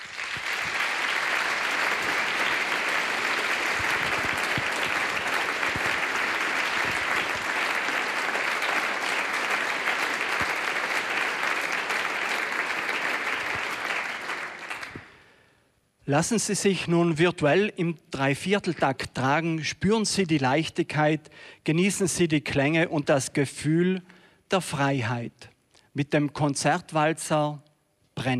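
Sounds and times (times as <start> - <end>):
audience applause: 0.0 - 15.2
speech: 16.1 - 27.6, 28.2 - 28.3.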